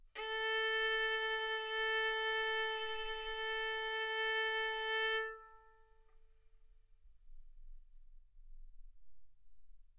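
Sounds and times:
violin bowed arco notes: 0:00.0 - 0:06.0.

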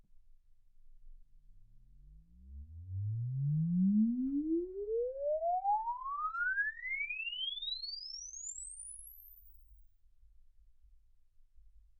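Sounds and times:
exponential sine sweep from 10 Hz to 24 kHz: 0:01.6 - 0:09.7.

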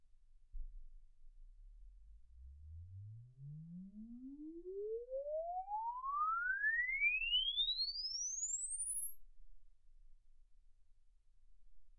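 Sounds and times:
exponential sine sweep from 10 Hz to 24 kHz: 0:02.4 - 0:09.9.

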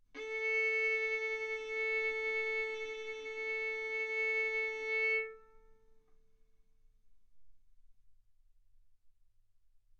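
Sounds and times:
violin bowed arco notes: 0:00.2 - 0:05.8.

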